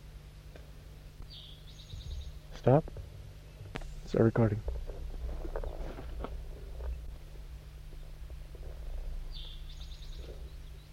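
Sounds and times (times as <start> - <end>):
steady low hum: 0.0 - 10.9
crossbill calling: 1.2 - 3.9, 5.4 - 10.9
speech: 2.6 - 3.0, 4.1 - 4.8.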